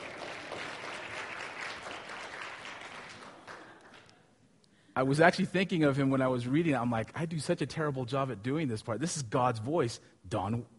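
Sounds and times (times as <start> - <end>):
audience applause: 0.0 - 4.1
speech: 5.0 - 10.7.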